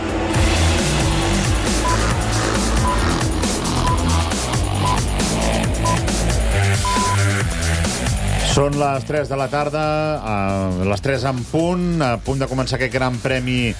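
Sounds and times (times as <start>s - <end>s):
MotoGP motorcycles pulling away on the warm-up lap at Jerez: 0.4s - 8.2s
speech: 8.6s - 13.7s.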